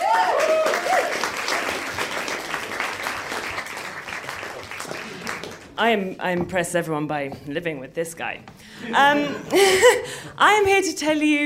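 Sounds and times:
audience round of applause: 0:00.0 - 0:05.8
speech: 0:05.8 - 0:11.4.

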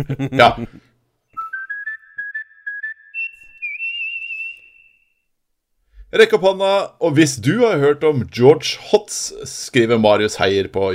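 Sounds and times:
speech: 0:00.0 - 0:00.9, 0:06.1 - 0:10.9
short human whistle as an edit marker: 0:01.4 - 0:05.3.

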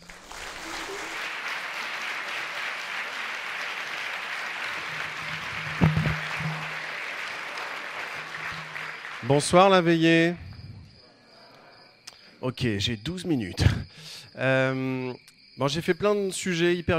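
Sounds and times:
audience applause: 0:00.0 - 0:10.0
speech: 0:09.3 - 0:10.4, 0:12.5 - 0:16.9.

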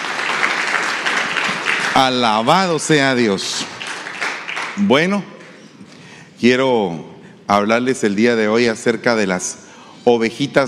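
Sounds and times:
audience applauding: 0:00.0 - 0:05.2
speech: 0:02.0 - 0:03.7, 0:04.8 - 0:05.3, 0:06.4 - 0:10.6.

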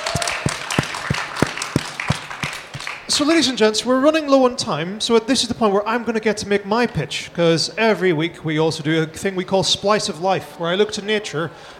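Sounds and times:
audience applause: 0:00.0 - 0:03.1
speech: 0:03.1 - 0:11.7.

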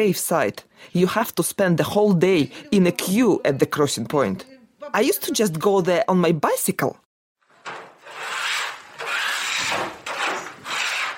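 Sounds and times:
speech: 0:00.0 - 0:07.0
baking trays being scraped: 0:07.4 - 0:11.1.

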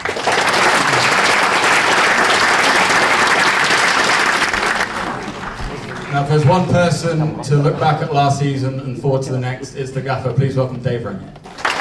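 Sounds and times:
large audience applause: 0:00.0 - 0:06.7, 0:11.5 - 0:11.7
laughter: 0:00.6 - 0:01.4, 0:04.8 - 0:09.4
speech: 0:06.2 - 0:11.4.

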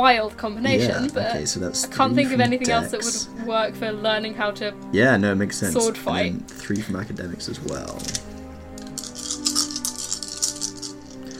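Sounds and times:
speech: 0:00.0 - 0:08.3
laughter: 0:00.7 - 0:03.5
six dice rattling and clattering across a hard surface: 0:07.7 - 0:11.3.

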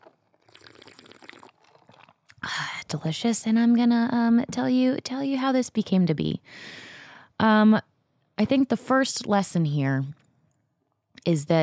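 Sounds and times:
person sipping an iced latte: 0:00.0 - 0:02.4
speech: 0:02.4 - 0:06.8, 0:07.4 - 0:10.2, 0:11.2 - 0:11.6.

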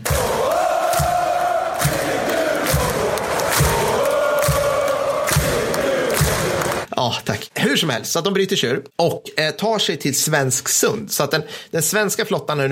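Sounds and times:
supporters' section chanting: 0:00.0 - 0:06.9
speech: 0:07.0 - 0:12.7.

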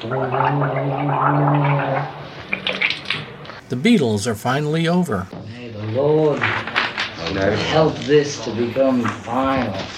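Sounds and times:
speech: 0:00.0 - 0:02.2, 0:03.7 - 0:05.4, 0:06.0 - 0:06.7, 0:07.3 - 0:09.9
gargling: 0:00.0 - 0:03.0.

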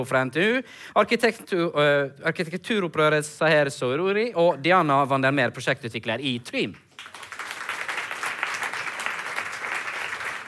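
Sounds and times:
speech: 0:00.0 - 0:06.8
audience applause welcoming debate panel: 0:07.0 - 0:10.4.

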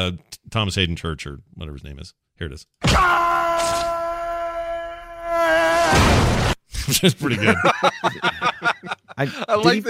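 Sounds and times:
speech: 0:00.0 - 0:03.9, 0:05.4 - 0:09.8
person yelling while falling: 0:02.9 - 0:06.2
laughter: 0:06.8 - 0:09.7.

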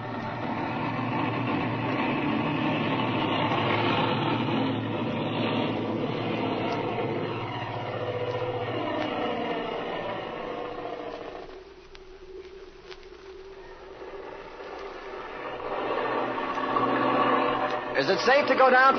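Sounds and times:
airplane engine during a takeoff run at over 7,000 feet elevation: 0:00.0 - 0:18.9
speech: 0:18.1 - 0:18.9.

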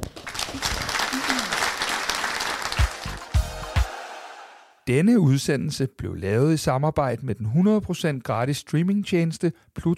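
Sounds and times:
audience applause: 0:00.0 - 0:04.6
speech: 0:04.9 - 0:09.9.

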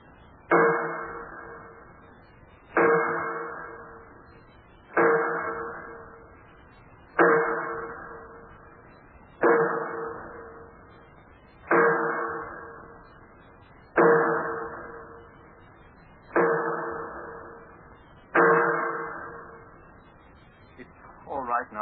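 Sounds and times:
sledgehammer hammering bolts on metal door: 0:00.5 - 0:01.9, 0:02.7 - 0:06.3, 0:07.1 - 0:08.7, 0:09.4 - 0:11.0, 0:11.6 - 0:13.2, 0:13.8 - 0:19.7.

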